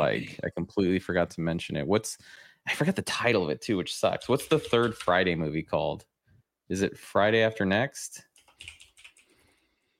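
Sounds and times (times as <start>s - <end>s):
speech: 0.0s - 6.1s, 6.7s - 8.8s
typing on a computer keyboard: 8.4s - 9.4s.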